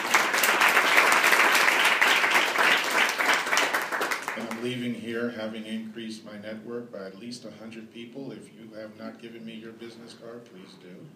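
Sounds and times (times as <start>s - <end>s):
audience applause: 0.0s - 4.6s
speech: 4.6s - 11.1s.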